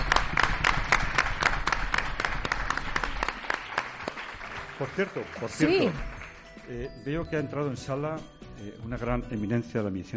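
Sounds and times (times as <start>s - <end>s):
audience applause: 0.0s - 6.8s
speech: 4.8s - 6.1s, 6.7s - 10.1s.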